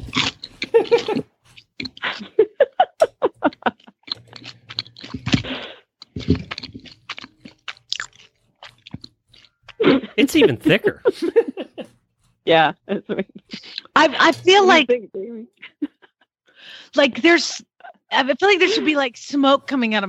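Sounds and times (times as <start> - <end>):
person crunching hot buttered toast with Marmite or Vegemite: 0.0 - 2.2, 3.5 - 9.8
laughter: 0.6 - 1.2, 2.0 - 4.2, 9.8 - 11.9, 12.8 - 14.8, 15.6 - 16.3, 17.8 - 19.2
speech: 0.8 - 1.3, 10.2 - 11.7, 12.5 - 15.5, 16.9 - 20.0.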